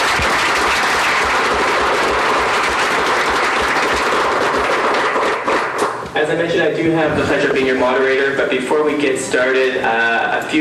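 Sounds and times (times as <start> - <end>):
audience applause: 0.0 - 6.0
speech: 6.3 - 10.5.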